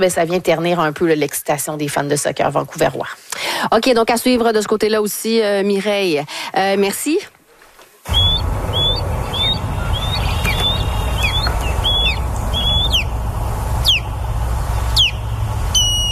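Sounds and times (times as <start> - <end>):
speech: 0.0 - 7.4, 8.0 - 8.9
low rumble: 8.1 - 16.1
osprey calls: 8.1 - 16.1.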